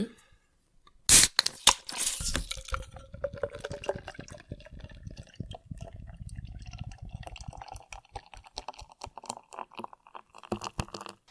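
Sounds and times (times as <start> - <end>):
beer can being opened: 1.1 - 4.3
fizzing beer foam and dribbling liquid: 1.1 - 11.2.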